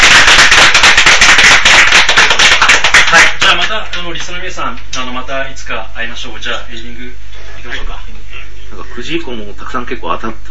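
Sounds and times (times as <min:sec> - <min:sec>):
applause: 0:00.0 - 0:04.4
speech: 0:04.0 - 0:10.5.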